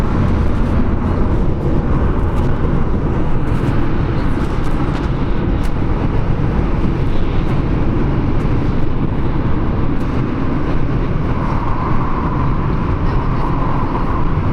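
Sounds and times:
London Tube train to Stansted: 0.0 - 14.5.

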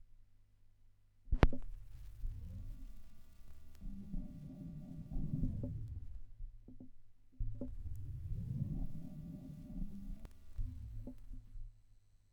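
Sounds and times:
vinyl record noise: 1.4 - 6.4, 7.4 - 11.7.

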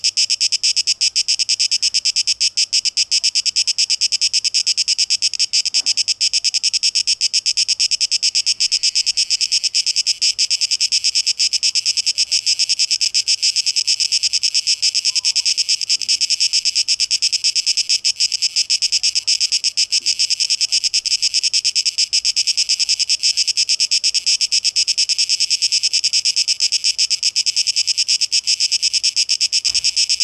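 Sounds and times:
cicadas buzzing: 0.0 - 30.2.

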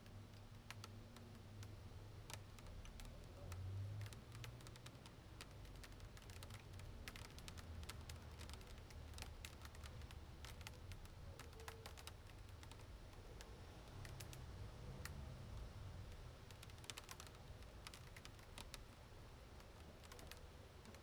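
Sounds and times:
rain on windowsills: 0.0 - 21.0.

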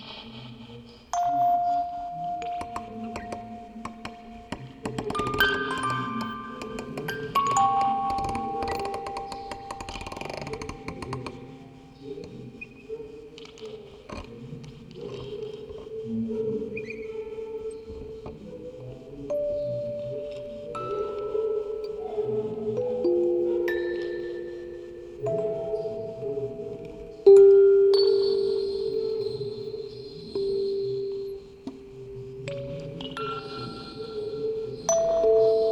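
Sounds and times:
quartet of music boxes playing: 1.1 - 12.8, 17.7 - 35.7.

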